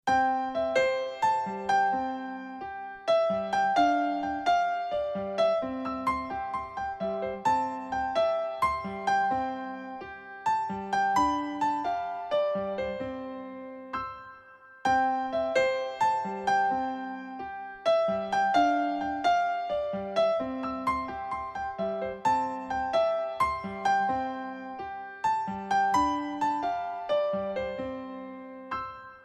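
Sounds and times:
piano: 0.0 - 29.2.

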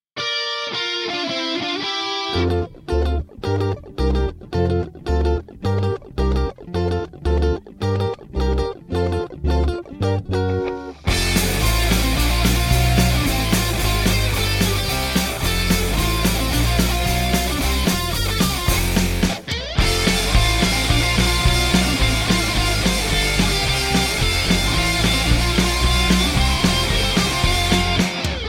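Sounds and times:
rock music: 0.2 - 28.4.

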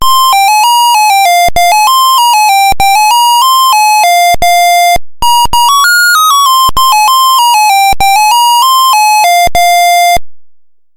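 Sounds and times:
Brick Game handheld startup sound: 0.0 - 10.2.

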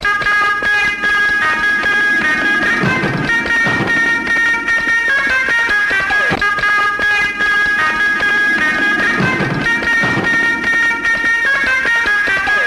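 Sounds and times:
funny tone: 0.0 - 12.6.

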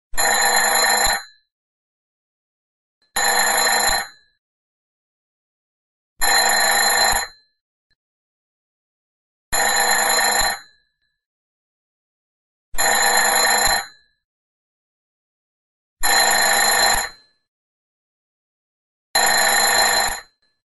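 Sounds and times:
retro business phone ring: 0.2 - 1.3, 3.2 - 4.2, 6.2 - 7.4, 9.6 - 10.7, 12.8 - 14.0, 16.0 - 17.2, 19.2 - 20.3.

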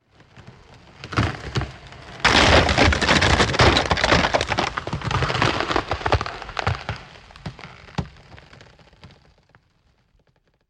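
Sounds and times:
iceberg impact: 2.2 - 7.1.

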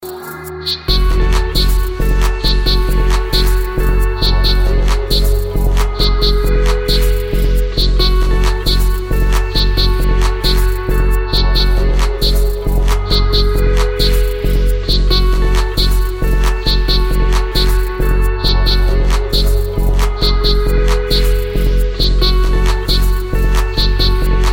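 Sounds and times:
tribal music: 0.0 - 24.5.

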